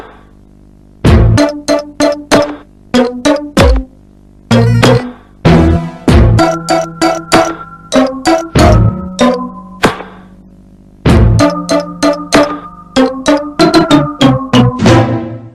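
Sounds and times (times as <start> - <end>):
GameCube startup sound: 1.2 - 3.8, 4.5 - 9.8, 11.2 - 15.5.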